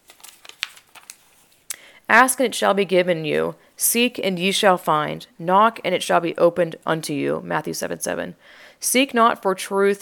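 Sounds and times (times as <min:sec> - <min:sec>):
book page being flipped one-handed: 0:00.0 - 0:01.7
speech: 0:02.1 - 0:10.0.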